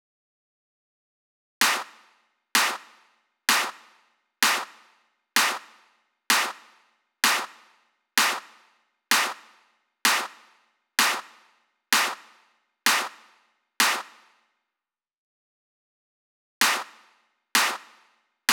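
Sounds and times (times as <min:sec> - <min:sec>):
clap at 128 BPM: 0:01.6 - 0:14.4, 0:16.6 - 0:18.5.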